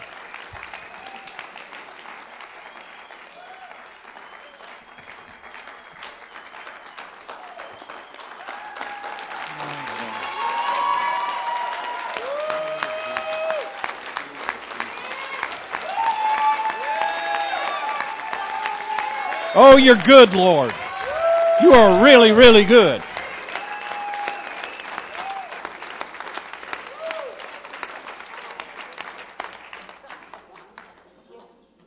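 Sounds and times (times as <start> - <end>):
audience applause: 0.0 - 31.1
speech: 19.6 - 20.8, 21.6 - 23.1.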